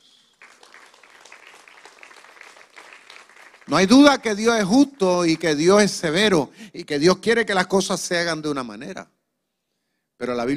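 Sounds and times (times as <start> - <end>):
crowd applauding: 0.0 - 6.2
speech: 3.7 - 9.2, 10.2 - 10.5.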